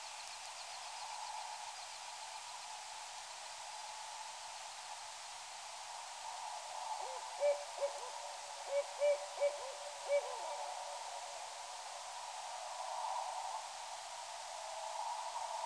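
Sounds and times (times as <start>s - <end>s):
background hiss: 0.0s - 15.6s
barred owl hooting: 7.0s - 10.7s.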